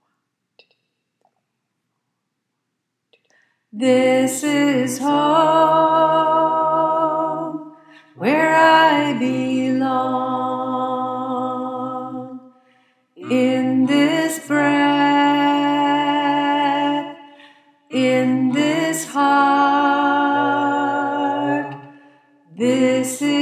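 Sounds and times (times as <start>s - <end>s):
alto choir singing: 3.8s - 12.4s, 13.2s - 17.3s, 17.9s - 22.0s, 22.6s - 23.3s.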